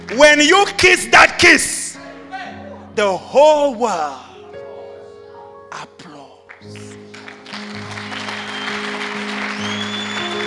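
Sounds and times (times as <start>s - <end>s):
speech: 0.1s - 1.8s, 3.0s - 4.3s
audience applause: 6.6s - 10.4s.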